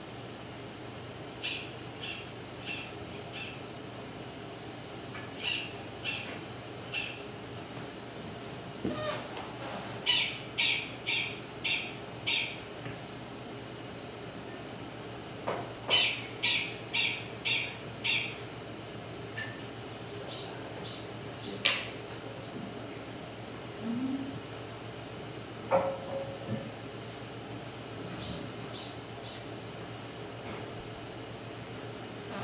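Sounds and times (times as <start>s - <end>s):
faint steady hum: 0.0s - 32.4s
animal alarm call squeaks: 8.9s - 9.3s.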